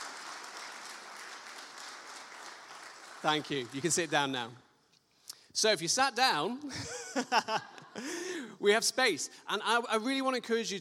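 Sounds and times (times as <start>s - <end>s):
audience round of applause: 0.0s - 4.4s
speech: 3.2s - 4.6s, 5.6s - 10.7s
laughter: 6.7s - 8.5s.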